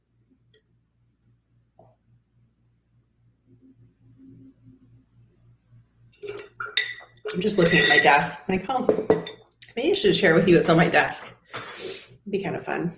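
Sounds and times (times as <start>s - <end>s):
speech: 3.6s - 6.4s, 7.2s - 11.4s, 12.3s - 12.9s
person drinking water: 6.2s - 7.4s.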